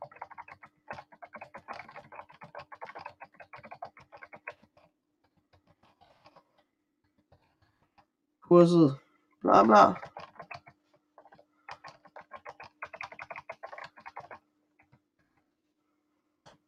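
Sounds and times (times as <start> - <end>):
typing on a computer keyboard: 0.0 - 4.9, 9.9 - 15.0
speech: 8.5 - 10.0.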